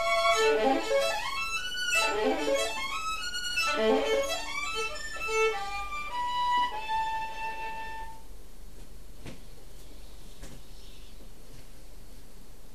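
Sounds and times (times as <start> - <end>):
waltz music: 0.0 - 8.1.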